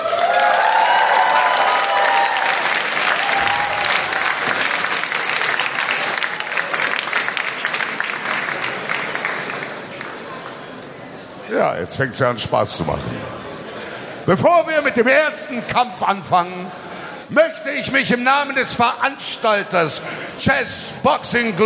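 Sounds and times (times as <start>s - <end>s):
people whooping: 0.0s - 4.8s
crowd applauding: 0.0s - 10.3s
speech: 11.7s - 13.4s, 14.3s - 21.6s.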